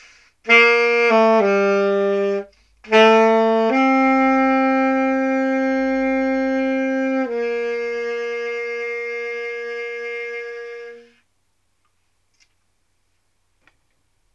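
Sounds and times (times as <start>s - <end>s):
saxophone: 0.0s - 11.3s.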